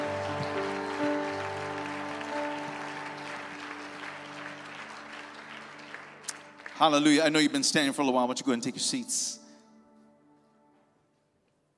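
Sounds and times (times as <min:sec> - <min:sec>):
audience hand clapping: 0:00.0 - 0:07.8
speech: 0:06.8 - 0:09.4.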